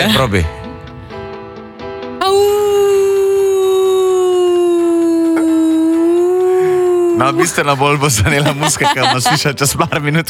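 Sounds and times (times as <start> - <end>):
speech: 0.1 - 0.6, 7.2 - 10.2
person imitating a wolf howl: 2.2 - 7.4
laughter: 7.4 - 10.2.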